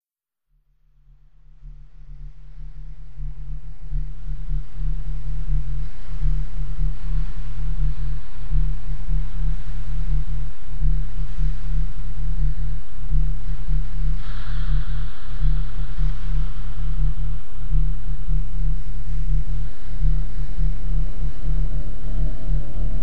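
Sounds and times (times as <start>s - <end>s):
low airy sub bass: 0.7s - 23.0s
haunting vocals: 21.0s - 23.0s.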